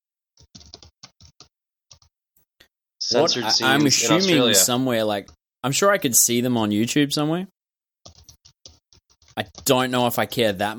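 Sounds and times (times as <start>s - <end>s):
quiet typing on a computer keyboard: 0.4s - 2.1s, 8.0s - 10.4s
speech: 3.1s - 7.6s, 9.4s - 10.7s.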